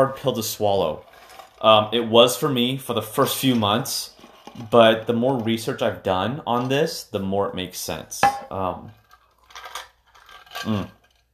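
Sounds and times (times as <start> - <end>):
speech: 0.0 - 9.0, 10.6 - 11.0
person sipping a drink: 10.6 - 11.0.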